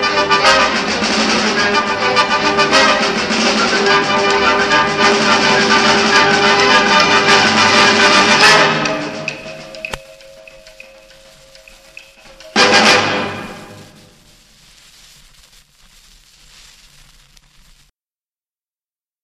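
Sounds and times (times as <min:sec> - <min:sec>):
rumba music: 0:00.0 - 0:14.4.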